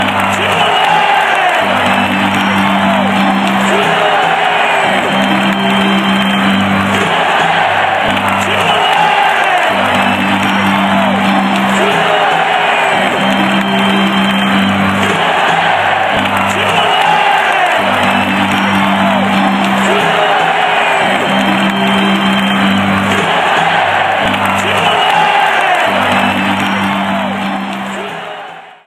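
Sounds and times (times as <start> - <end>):
football crowd chanting: 0.0 - 28.8.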